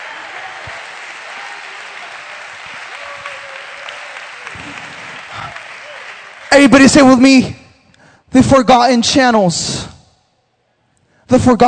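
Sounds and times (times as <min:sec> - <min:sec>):
audience applause: 0:00.0 - 0:07.2
speech: 0:06.6 - 0:07.6, 0:08.3 - 0:09.9, 0:11.3 - 0:11.6.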